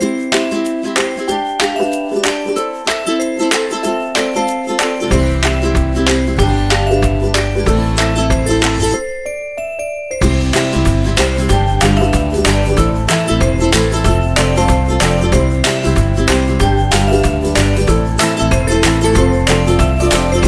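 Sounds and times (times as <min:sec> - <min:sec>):
happy ukulele music: 0:00.0 - 0:09.4, 0:10.1 - 0:20.4.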